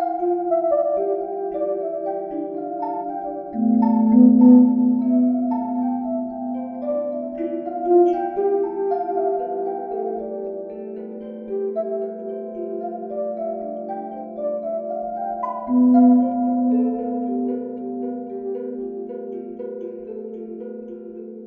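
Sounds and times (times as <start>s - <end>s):
string tine: 0.0s - 21.4s.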